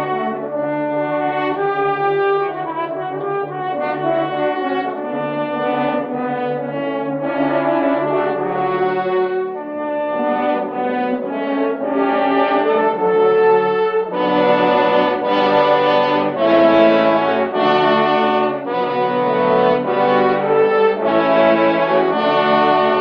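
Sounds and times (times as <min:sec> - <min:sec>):
horn choir playing: 0:00.0 - 0:22.9.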